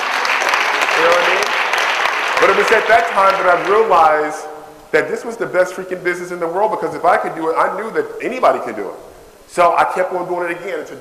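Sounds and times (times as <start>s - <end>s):
audience applause: 0.0s - 4.4s
speech: 2.4s - 10.9s.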